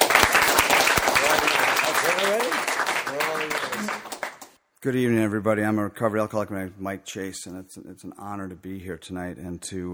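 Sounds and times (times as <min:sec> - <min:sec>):
audience applause welcoming a speaker at an Alcoholics Anonymous meeting: 0:00.0 - 0:04.6
speech: 0:04.8 - 0:09.9.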